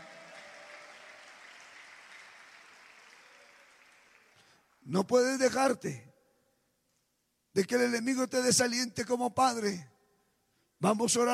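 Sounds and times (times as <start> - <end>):
audience applause: 0.0 - 4.8
speech: 4.8 - 6.1, 7.6 - 9.9, 10.8 - 11.3.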